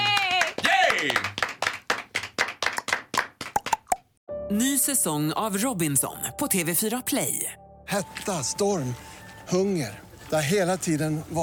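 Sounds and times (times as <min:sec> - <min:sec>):
applause, hands clapping: 0:00.0 - 0:04.1
speech: 0:04.5 - 0:11.4.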